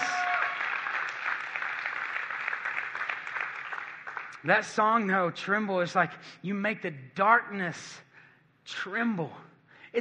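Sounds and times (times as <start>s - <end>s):
audience applause: 0.0s - 4.4s
speech: 4.4s - 8.1s, 8.7s - 9.9s.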